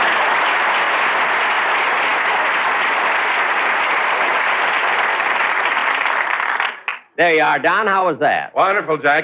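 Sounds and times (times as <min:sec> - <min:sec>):
audience applause: 0:00.0 - 0:07.1
speech: 0:07.2 - 0:09.2.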